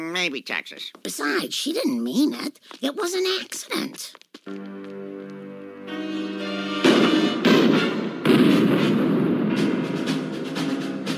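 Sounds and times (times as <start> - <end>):
speech: 0.1 - 4.8
heavy booming bursts: 6.7 - 10.7
gunshot in a cartoon scene: 6.8 - 10.6.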